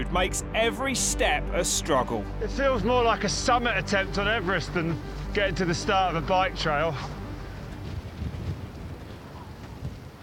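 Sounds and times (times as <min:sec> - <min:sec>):
speech: 0:00.0 - 0:07.2
strong cold wind at high altitude near a volcanic crater: 0:02.5 - 0:10.2.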